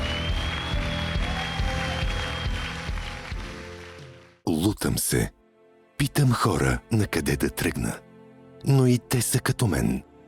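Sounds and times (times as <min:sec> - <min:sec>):
audience applause: 0:00.0 - 0:04.4
speech: 0:04.7 - 0:05.4, 0:06.0 - 0:08.0, 0:08.6 - 0:10.1.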